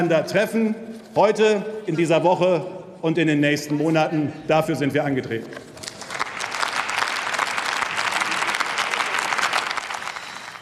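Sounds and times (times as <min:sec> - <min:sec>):
speech: 0:00.0 - 0:05.7
parliamentary chamber audience applause: 0:05.8 - 0:10.6.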